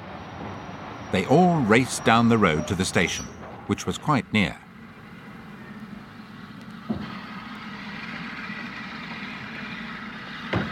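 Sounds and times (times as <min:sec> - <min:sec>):
steam train approaching with a low mechanical rumble: 0:00.0 - 0:10.6
speech: 0:01.1 - 0:04.6.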